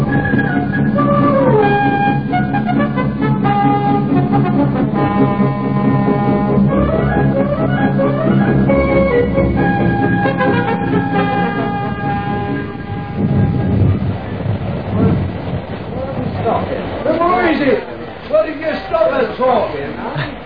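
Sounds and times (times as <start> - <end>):
steady train horn tone: 0.0 - 14.3
express train rumbling and clattering: 0.0 - 20.4.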